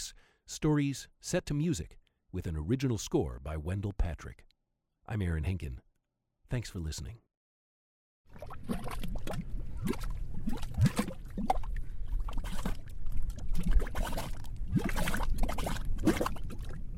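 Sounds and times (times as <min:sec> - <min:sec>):
speech: 0:00.0 - 0:04.5, 0:05.1 - 0:05.9, 0:06.5 - 0:07.2, 0:09.8 - 0:10.1
mud pots bubbling and spitting mud: 0:08.3 - 0:16.9.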